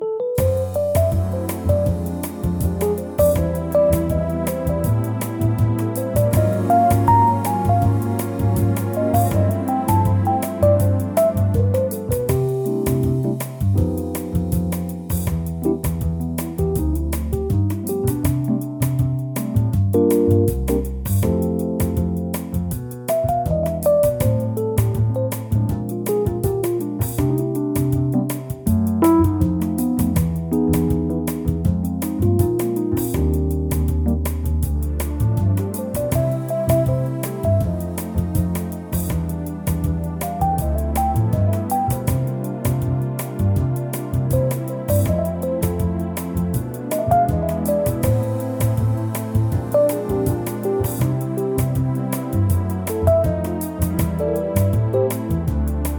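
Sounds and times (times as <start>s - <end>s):
bossa nova music in C: 0.0s - 55.9s.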